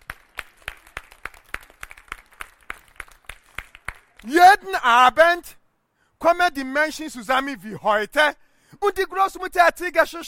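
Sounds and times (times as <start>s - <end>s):
audience applause: 0.0s - 4.3s
speech: 4.2s - 5.6s, 6.2s - 10.2s.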